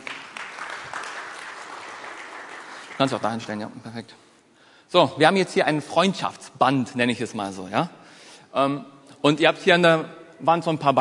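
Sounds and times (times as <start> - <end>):
audience applause: 0.0 - 3.6
speech: 3.0 - 4.3, 4.9 - 10.9.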